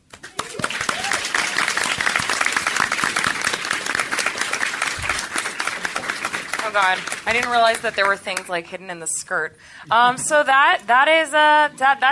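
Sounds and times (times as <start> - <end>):
audience applauding and cheering: 0.0 - 8.4
speech: 6.8 - 12.1.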